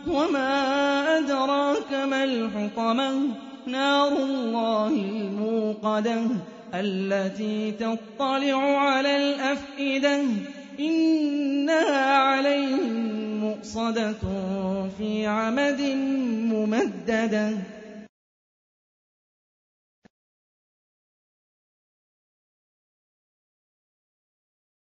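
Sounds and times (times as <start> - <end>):
Quran recitation: 0.0 - 18.1.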